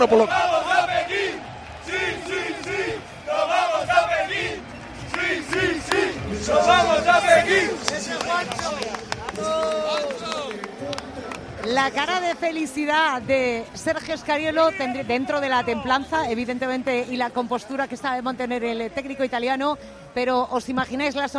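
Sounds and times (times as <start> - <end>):
speech: 0.0 - 0.5, 11.6 - 21.3
Spanish sports fans applauding: 0.0 - 12.8.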